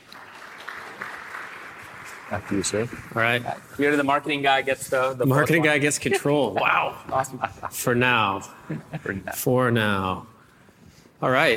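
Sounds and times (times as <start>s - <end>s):
audience applause: 0.0s - 4.0s
speech: 2.3s - 10.3s, 11.2s - 11.5s
laughter: 5.6s - 9.5s.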